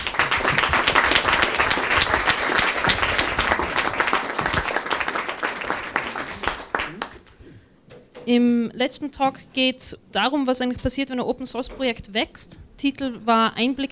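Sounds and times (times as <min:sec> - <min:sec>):
short round of audience applause: 0:00.0 - 0:07.4
speech: 0:08.3 - 0:13.8.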